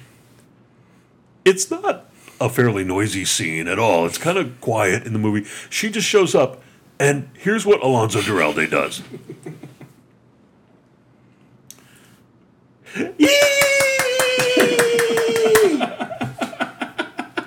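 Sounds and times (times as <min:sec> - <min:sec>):
speech: 0:01.5 - 0:09.6
laughter: 0:08.2 - 0:10.0, 0:13.0 - 0:17.4
hand clapping with fingers spread wide: 0:13.2 - 0:16.7.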